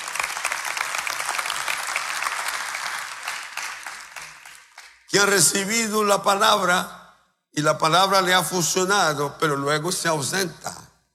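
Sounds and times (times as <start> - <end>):
crowd clapping: 0.0 - 5.4
speech: 5.1 - 7.0, 7.6 - 10.8.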